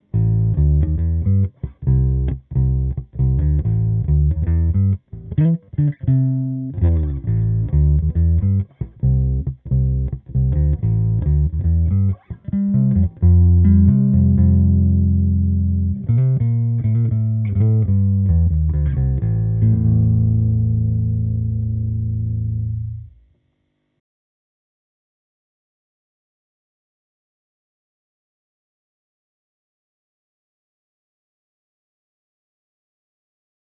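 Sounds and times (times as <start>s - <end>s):
Aria short-scale bass through Block 300B cabinet: 0.0s - 23.2s.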